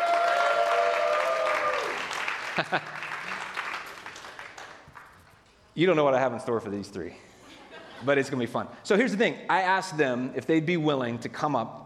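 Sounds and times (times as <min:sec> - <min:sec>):
audience applause welcoming people onto a stage: 0:00.0 - 0:05.4
laughter: 0:02.4 - 0:03.6, 0:07.1 - 0:08.5
speech: 0:02.6 - 0:03.0, 0:05.8 - 0:07.3, 0:08.0 - 0:11.8.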